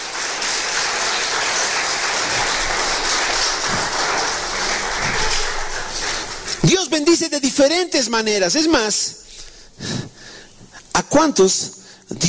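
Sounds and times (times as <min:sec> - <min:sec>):
crowd audience applauding: 0:00.0 - 0:07.2
speech: 0:07.0 - 0:09.2, 0:11.1 - 0:12.2.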